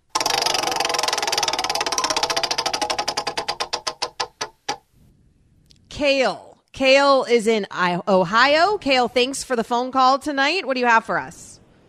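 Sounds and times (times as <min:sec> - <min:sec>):
roulette wheel spinning and ticking: 0:00.0 - 0:04.8
speech: 0:06.0 - 0:11.5.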